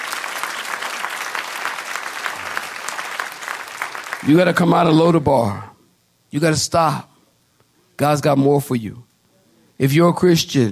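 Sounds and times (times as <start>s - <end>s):
audience clapping hands: 0.0s - 4.8s
speech: 4.2s - 5.7s, 6.3s - 7.1s, 8.0s - 9.1s, 9.8s - 10.6s.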